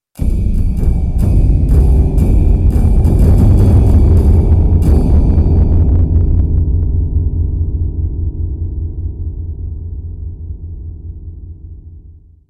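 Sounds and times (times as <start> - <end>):
rumbling: 0.3 - 10.5.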